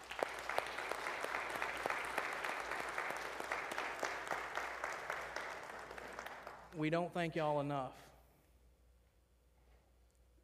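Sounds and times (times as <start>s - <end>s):
audience applause: 0.0s - 6.7s
speech: 6.8s - 8.1s.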